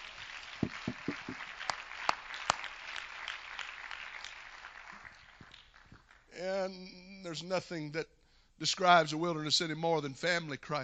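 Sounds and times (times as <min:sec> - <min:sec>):
audience clapping hands: 0:00.0 - 0:06.4
speech: 0:06.4 - 0:10.8.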